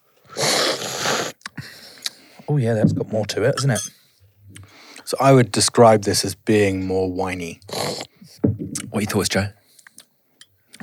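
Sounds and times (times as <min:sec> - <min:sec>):
slurping coffee during a tasting: 0:00.3 - 0:01.4
speech: 0:02.5 - 0:04.0, 0:05.1 - 0:07.8, 0:09.0 - 0:09.6.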